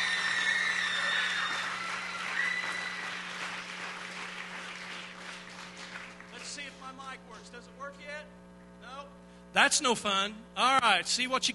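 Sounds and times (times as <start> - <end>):
audience clapping hands loudly: 0.0 - 7.0
speech: 6.9 - 11.5.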